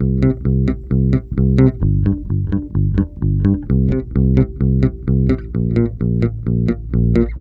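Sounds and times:
bass: 0:00.0 - 0:07.3.

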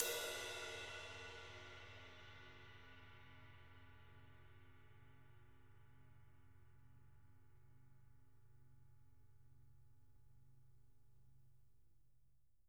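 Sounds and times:
ride cymbal: 0:00.0 - 0:04.2.

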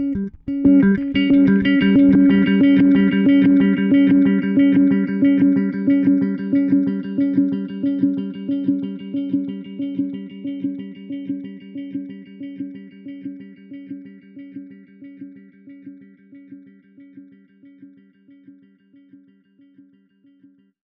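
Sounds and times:
bass with delay: 0:00.0 - 0:09.6.

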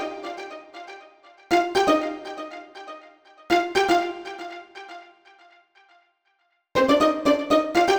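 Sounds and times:
pizzicato strings: 0:00.0 - 0:05.0, 0:06.8 - 0:07.9.

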